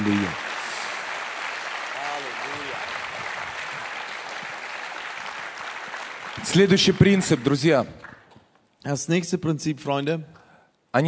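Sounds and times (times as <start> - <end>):
speech: 0.0 - 0.4, 6.4 - 8.1, 8.8 - 11.0
church congregation applauding during a bilingual sermon: 0.0 - 8.4.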